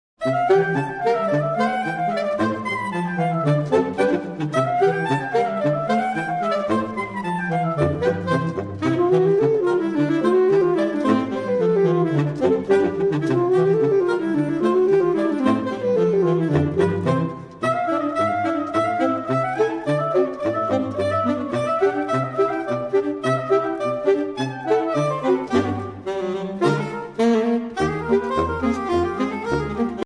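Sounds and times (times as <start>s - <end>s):
saxophone quartet: 0.2s - 30.0s.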